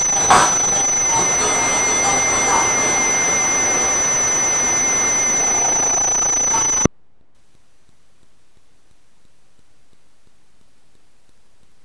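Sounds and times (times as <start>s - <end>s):
modulated subliminal sound: 0.1s - 6.9s.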